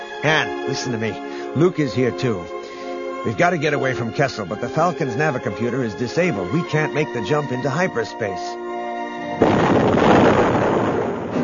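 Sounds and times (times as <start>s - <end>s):
speech: 0.2s - 2.6s, 3.2s - 8.6s
explosion on the starboard side: 9.4s - 11.4s.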